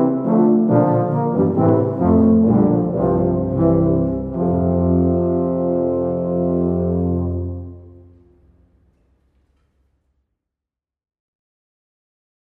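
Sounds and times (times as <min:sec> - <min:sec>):
low brass quartet playing early music chansons: 0:00.0 - 0:09.1.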